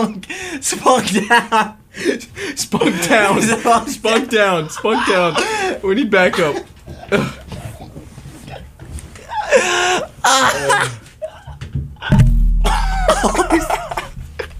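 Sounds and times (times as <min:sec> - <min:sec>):
speech: 0:00.0 - 0:07.4, 0:09.6 - 0:11.0, 0:13.2 - 0:13.8
laughter: 0:01.0 - 0:06.7, 0:12.7 - 0:14.5
head hitting a microphone: 0:11.8 - 0:14.4.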